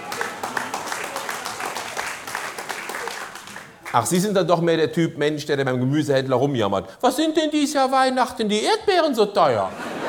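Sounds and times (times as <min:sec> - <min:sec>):
audience applause: 0:00.0 - 0:04.1
speech: 0:03.9 - 0:09.8
laughter: 0:09.5 - 0:10.0.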